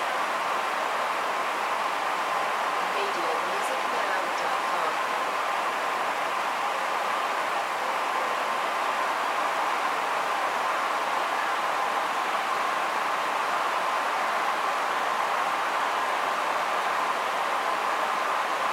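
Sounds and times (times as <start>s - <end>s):
large sports crowd in an outdoor stadium: 0.0s - 18.7s.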